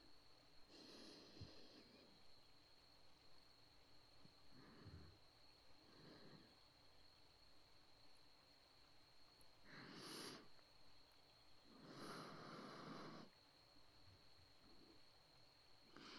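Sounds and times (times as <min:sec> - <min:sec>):
breathing in the right ear: 0:00.7 - 0:02.2, 0:04.3 - 0:06.7, 0:09.6 - 0:10.6, 0:11.7 - 0:13.4, 0:15.9 - 0:16.1.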